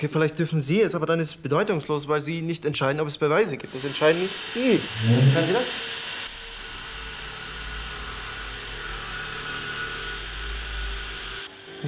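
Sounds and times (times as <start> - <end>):
speech: 0.0 - 6.0
drilling: 3.6 - 11.8.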